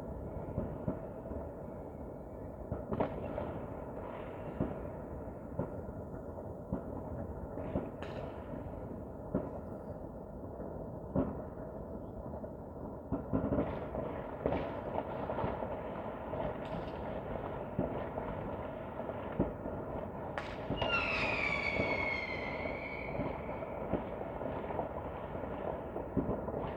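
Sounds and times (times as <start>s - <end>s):
New Year's Eve fireworks bangs and crackles: 0.0s - 26.7s
whistling firework rocket sliding downward: 20.4s - 24.1s.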